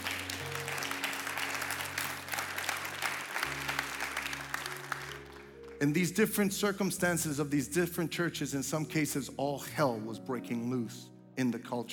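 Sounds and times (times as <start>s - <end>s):
audience clapping: 0.0s - 6.5s
speech: 5.8s - 11.9s.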